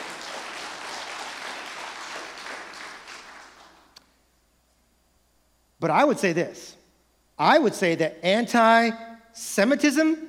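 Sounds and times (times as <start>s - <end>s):
audience clapping: 0.0s - 4.0s
speech: 5.8s - 6.8s, 7.4s - 10.2s.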